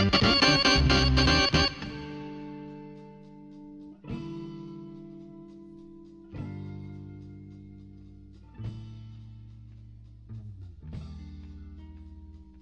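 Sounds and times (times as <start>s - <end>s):
keyboard playing: 0.0s - 2.6s.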